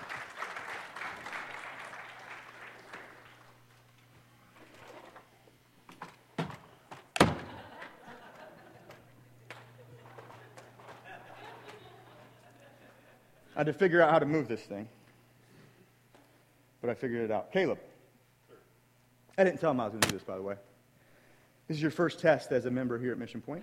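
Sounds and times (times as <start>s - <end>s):
audience applause: 0.0s - 3.7s
laughter: 7.3s - 13.8s
speech: 13.6s - 15.0s, 16.9s - 17.9s, 19.4s - 20.7s, 21.7s - 23.6s.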